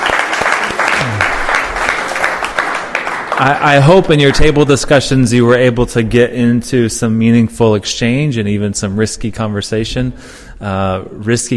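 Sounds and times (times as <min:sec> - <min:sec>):
audience applause: 0:00.0 - 0:04.6
speech: 0:03.4 - 0:11.5.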